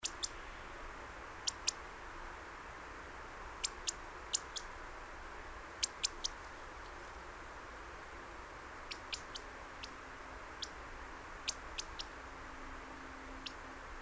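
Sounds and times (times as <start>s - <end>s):
European robin clicking calls: 0.0s - 0.7s, 1.4s - 1.8s, 3.6s - 4.8s, 5.8s - 7.0s, 8.8s - 12.2s, 13.0s - 13.7s
background hiss: 0.0s - 13.9s.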